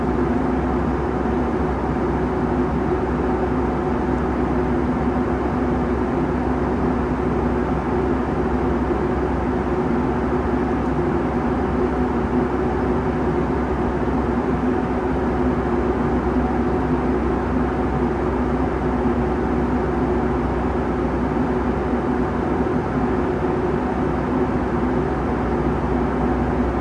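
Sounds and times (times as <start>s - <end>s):
engine drone inside a Boeing 757 cabin in flight: 0.0s - 26.8s.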